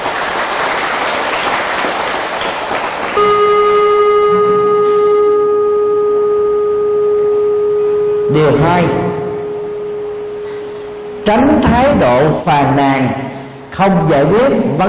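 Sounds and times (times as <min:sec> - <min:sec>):
loud round of applause: 0:00.0 - 0:03.2
steady sustained electronic tone: 0:03.2 - 0:13.8
speech: 0:08.4 - 0:09.0, 0:11.2 - 0:14.8.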